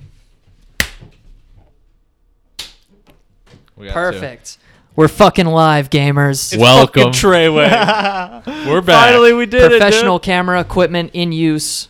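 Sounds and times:
hand clap test: 0:00.8 - 0:01.0
speech: 0:03.8 - 0:11.8
laughter: 0:06.6 - 0:10.2.

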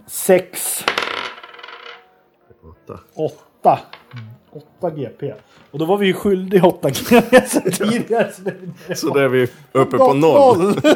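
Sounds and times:
speech: 0:00.0 - 0:00.9, 0:02.6 - 0:10.9
three dice rolled together: 0:00.8 - 0:02.0
laughter: 0:06.9 - 0:10.9.

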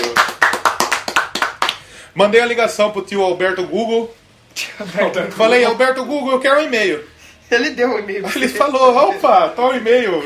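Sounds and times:
hand clapping: 0:00.0 - 0:01.9
speech: 0:02.2 - 0:10.2.

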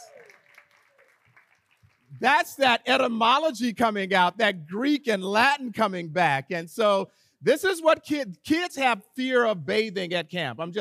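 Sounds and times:
applause: 0:00.0 - 0:02.5
speech: 0:02.1 - 0:10.7.

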